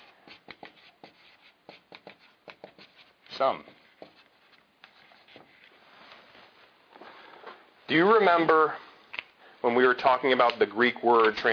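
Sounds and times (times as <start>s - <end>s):
writing on a board during a lecture: 0.0s - 5.7s
speech: 3.4s - 3.7s, 7.9s - 8.8s, 9.6s - 11.5s.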